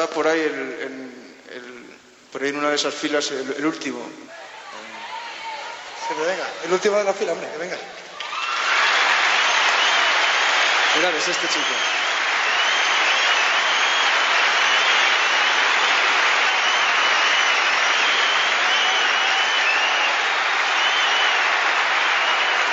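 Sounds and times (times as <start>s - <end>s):
speech: 0.0s - 4.4s, 6.1s - 8.0s, 11.0s - 12.0s
sustained applause from a large audience: 7.9s - 22.7s.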